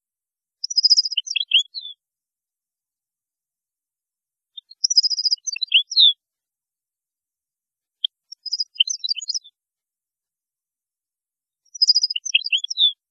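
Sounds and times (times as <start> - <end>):
European goldfinch song: 0.6 - 2.0, 4.6 - 6.2, 8.0 - 9.6, 11.6 - 13.0.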